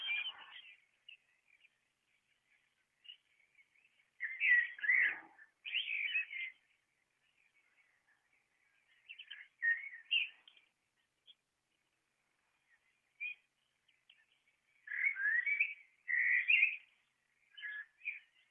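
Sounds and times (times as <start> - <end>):
blackbird singing with flourish: 0.0 - 11.4, 12.6 - 18.4.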